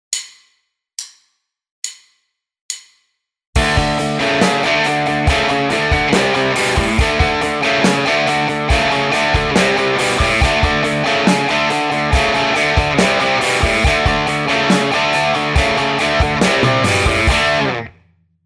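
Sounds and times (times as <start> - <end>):
guitar riff: 3.6 - 18.0.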